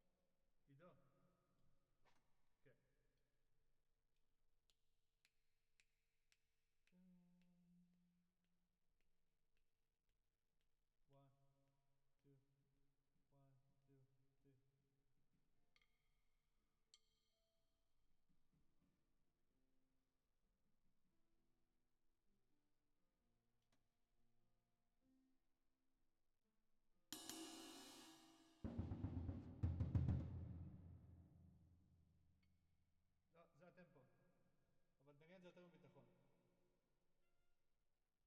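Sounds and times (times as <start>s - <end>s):
drums with reverb: 27.2s - 31.5s.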